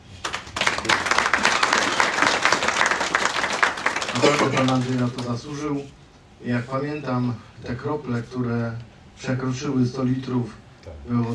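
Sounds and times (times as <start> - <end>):
audience applause: 0.0 - 5.4
speech: 4.2 - 11.3.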